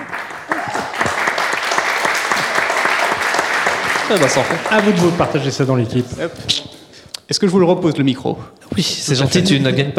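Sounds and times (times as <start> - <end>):
audience applause: 0.0 - 5.4
speech: 4.1 - 9.9.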